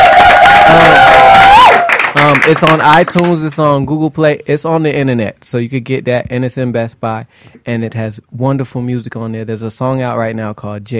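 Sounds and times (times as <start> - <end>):
crowd clapping and cheering: 0.0 - 3.8
speech: 2.5 - 10.9.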